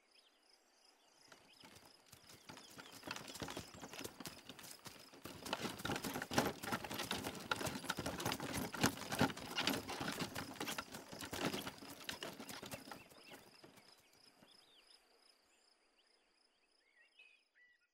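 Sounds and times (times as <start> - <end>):
horse-drawn cart: 1.3 - 14.8.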